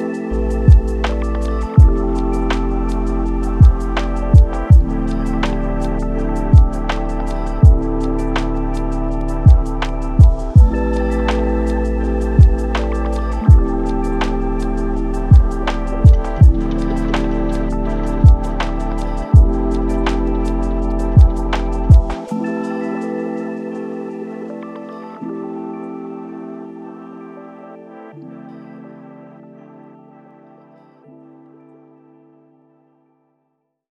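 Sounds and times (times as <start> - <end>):
lofi hip hop: 0.0 - 25.4.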